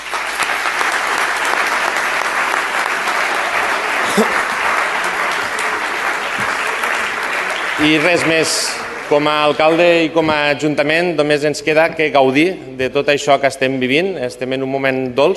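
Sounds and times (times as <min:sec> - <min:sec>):
audience applause: 0:00.0 - 0:10.2
speech: 0:07.8 - 0:15.3.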